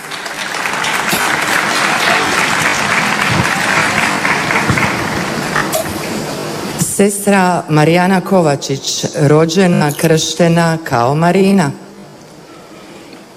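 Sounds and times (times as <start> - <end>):
audience applause welcoming a religious sister: 0.0 - 6.4
speech: 7.0 - 11.8.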